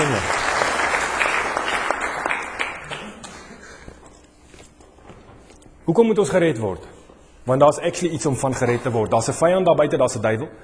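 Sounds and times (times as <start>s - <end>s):
audience applause: 0.0s - 3.6s
speech: 0.1s - 0.3s, 5.9s - 10.6s.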